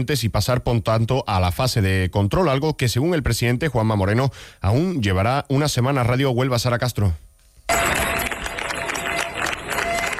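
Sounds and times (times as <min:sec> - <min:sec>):
speech: 0:00.0 - 0:07.3
residents of Niebla applauding departing UME troops: 0:07.7 - 0:10.1.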